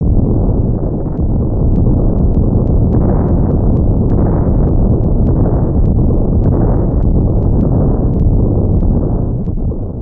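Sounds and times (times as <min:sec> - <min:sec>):
explosion: 0:00.0 - 0:10.0.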